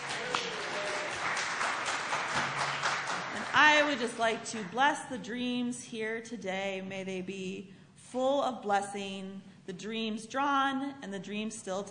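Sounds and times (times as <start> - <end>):
audience applause: 0.0 - 4.2
speech: 3.8 - 11.8.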